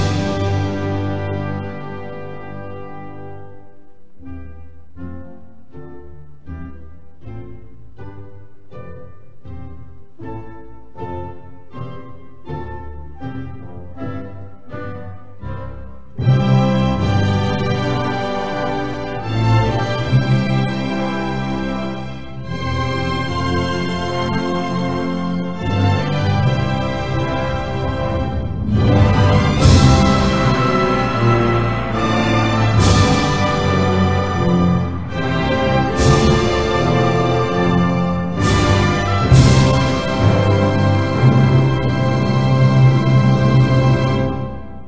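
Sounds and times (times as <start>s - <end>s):
national anthem: 0.0s - 3.3s, 16.2s - 44.7s.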